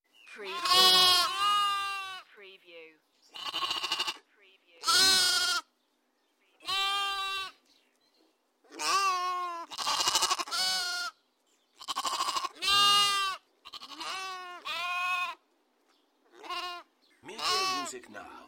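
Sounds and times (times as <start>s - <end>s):
lambs bleating: 0.4s - 2.3s, 3.3s - 5.7s, 6.6s - 7.6s, 8.7s - 11.2s, 11.8s - 15.4s, 16.3s - 18.0s.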